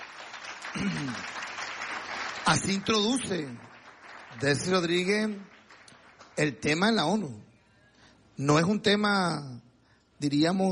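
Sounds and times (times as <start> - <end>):
audience applause at the United Nations after a speech: 0.0 - 7.2
speech: 0.7 - 1.4, 2.5 - 3.7, 4.4 - 5.5, 6.4 - 7.5, 8.4 - 10.7.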